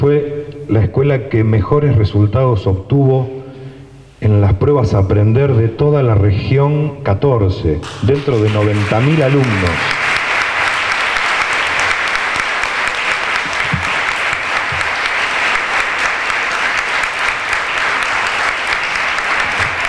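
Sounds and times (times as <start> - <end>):
speech: 0.0 - 3.4, 4.2 - 10.1
audience applause: 7.9 - 19.8.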